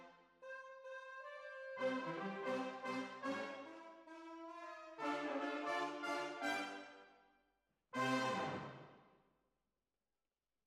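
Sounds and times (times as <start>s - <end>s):
horns: 1.1s - 7.0s, 8.0s - 8.8s.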